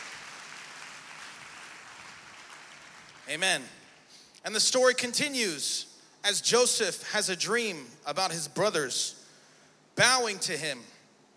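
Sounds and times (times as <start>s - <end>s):
audience clapping hands: 0.0s - 4.0s
speech: 3.3s - 3.8s, 4.4s - 9.2s, 10.0s - 10.9s.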